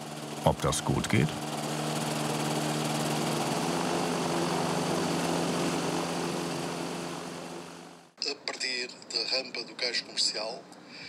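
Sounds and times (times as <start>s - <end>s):
seaplane propeller engine droning: 0.0s - 8.2s
speech: 0.4s - 1.5s, 9.4s - 10.8s.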